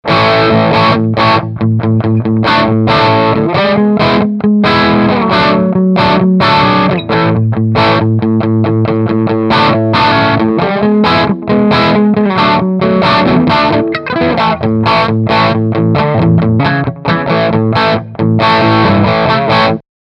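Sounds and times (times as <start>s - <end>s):
overdrive distortion: 0.0s - 19.8s.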